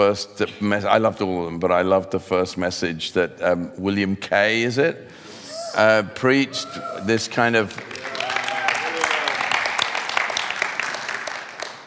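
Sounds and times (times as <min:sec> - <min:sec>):
speech: 0:00.0 - 0:08.0
crowd clapping: 0:07.5 - 0:11.8.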